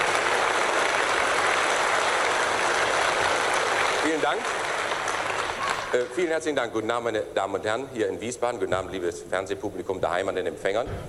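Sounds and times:
studio audience applause: 0:00.0 - 0:06.1
speech: 0:04.2 - 0:04.6, 0:05.9 - 0:11.0.

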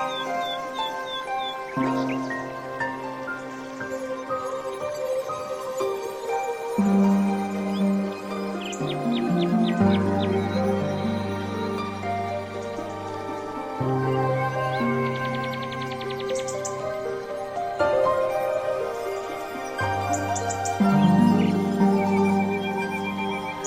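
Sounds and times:
zen music with sustained tones: 0:00.0 - 0:23.6.

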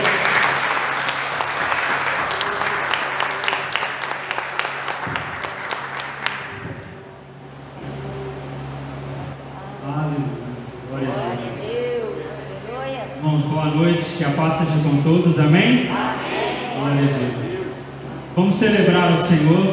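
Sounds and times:
audience applause: 0:00.0 - 0:06.8
low hum: 0:00.0 - 0:19.7
speech: 0:14.3 - 0:17.5, 0:18.4 - 0:19.7.

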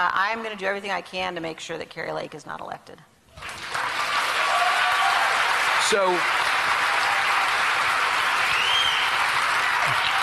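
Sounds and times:
speech: 0:00.0 - 0:03.6, 0:05.9 - 0:06.5
applause: 0:03.4 - 0:10.2
audience cheering: 0:03.4 - 0:10.2.

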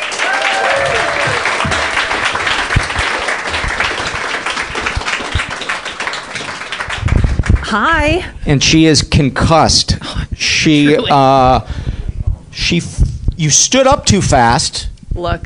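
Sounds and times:
live audience applause at a stage show: 0:00.0 - 0:07.8
speech: 0:07.7 - 0:11.8, 0:12.6 - 0:15.4.

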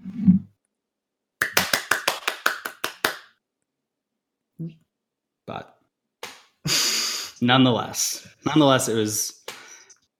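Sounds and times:
applause track: 0:01.4 - 0:03.3
speech: 0:04.6 - 0:04.8, 0:05.5 - 0:05.8, 0:07.4 - 0:09.4.

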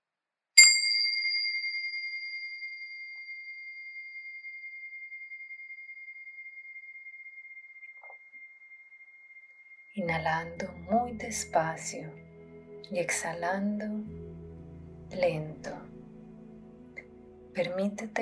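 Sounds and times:
small meditation bell ringing: 0:00.6 - 0:10.0
speech: 0:10.0 - 0:12.2, 0:12.9 - 0:14.2, 0:15.1 - 0:15.8, 0:17.6 - 0:18.1.

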